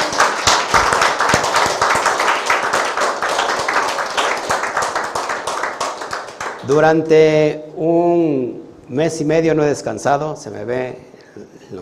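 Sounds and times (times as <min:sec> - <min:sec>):
applause: 0:00.0 - 0:07.0
speech: 0:06.7 - 0:11.8.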